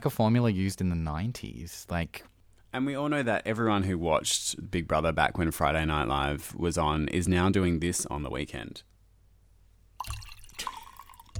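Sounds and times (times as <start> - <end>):
speech: 0.0 - 8.9
wine poured into a wine glass: 10.0 - 11.3.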